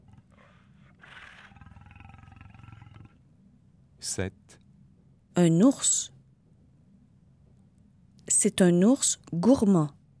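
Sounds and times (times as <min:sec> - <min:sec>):
tiger roaring: 0:00.0 - 0:03.3
speech: 0:04.0 - 0:04.6, 0:05.4 - 0:06.2, 0:08.4 - 0:10.0.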